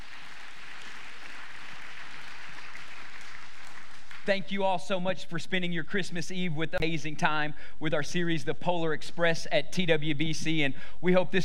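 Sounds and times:
audience hand clap applause: 0.0 - 4.4
speech: 4.2 - 11.4.

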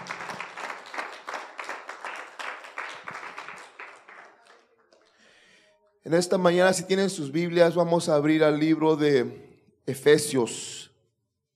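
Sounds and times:
audience applause: 0.0 - 5.1
speech: 6.0 - 10.8.

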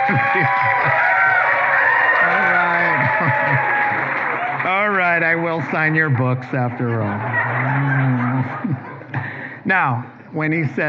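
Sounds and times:
laughter: 0.0 - 1.5, 2.2 - 10.8
scattered whoops and cheering voices: 0.0 - 4.7
audience applauding: 0.0 - 8.8
speech: 0.1 - 1.2, 5.2 - 10.8.

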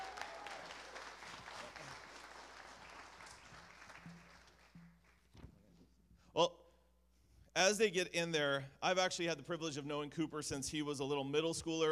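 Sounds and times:
audience applause: 0.0 - 4.7
speech: 6.4 - 6.6, 7.6 - 11.9.

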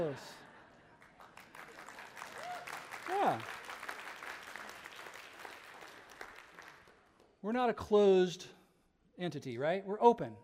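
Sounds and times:
speech: 0.0 - 0.4, 3.1 - 3.6, 7.4 - 8.6, 9.2 - 10.4
faint scattered clapping: 0.9 - 7.4.

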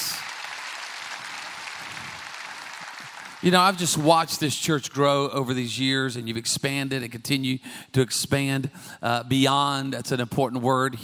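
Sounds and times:
audience applause: 0.0 - 4.5
speech: 3.4 - 11.0.

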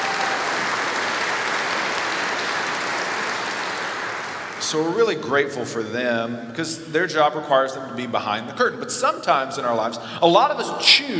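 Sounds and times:
crowd applause: 0.0 - 5.0
speech: 4.6 - 11.1.

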